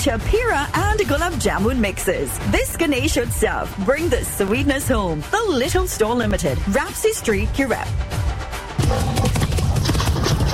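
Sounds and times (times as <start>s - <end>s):
speech: 0.0s - 8.2s
heavy hoofbeats standing in for a rhino running: 8.8s - 10.5s.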